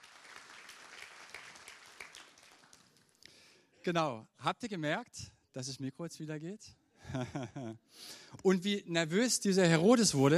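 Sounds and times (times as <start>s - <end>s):
audience applause: 0.0s - 3.1s
speech: 3.8s - 10.3s
laughter: 7.0s - 7.8s.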